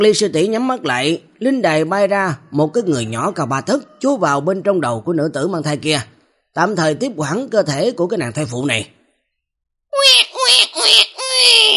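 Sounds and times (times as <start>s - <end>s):
speech: 0.0s - 9.0s
newborn baby crying: 10.0s - 11.7s.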